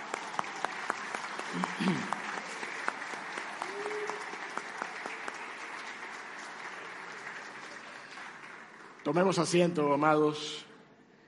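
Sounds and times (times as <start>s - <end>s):
audience applause: 0.0s - 10.0s
speech: 1.5s - 2.2s, 9.1s - 10.7s.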